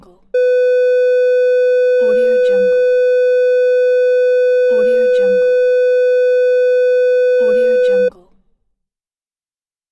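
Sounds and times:
heart rate monitor beeping: 0:00.3 - 0:08.1.

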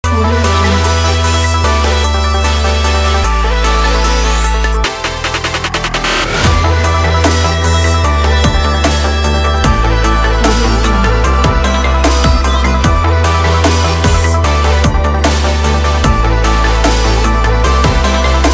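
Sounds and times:
stylish future bass music: 0:00.0 - 0:18.5.

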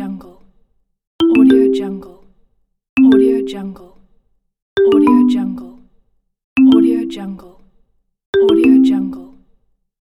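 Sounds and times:
marimba message notification tone: 0:01.2 - 0:01.8, 0:04.8 - 0:05.7, 0:06.6 - 0:07.1, 0:08.4 - 0:09.2.

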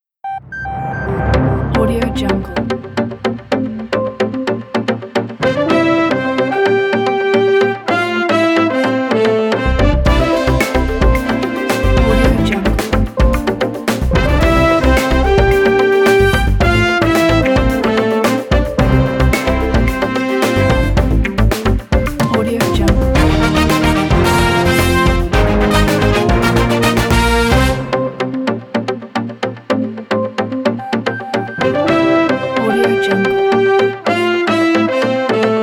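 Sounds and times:
news opening theme music: 0:00.3 - 0:35.6.

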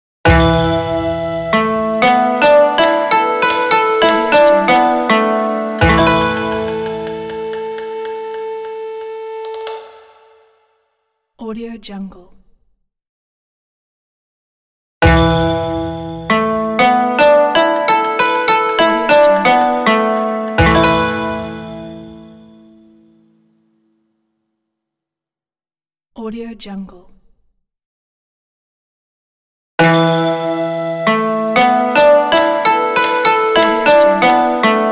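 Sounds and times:
traditional Asian logo music: 0:00.3 - 0:10.5, 0:15.0 - 0:23.1, 0:29.8 - 0:34.9.

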